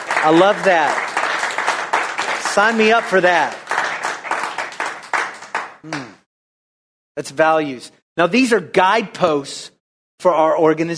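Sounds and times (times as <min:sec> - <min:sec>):
audience clapping hands: 0:00.0 - 0:06.3
speech: 0:00.2 - 0:01.1, 0:02.6 - 0:03.6, 0:05.8 - 0:06.1, 0:07.2 - 0:10.9.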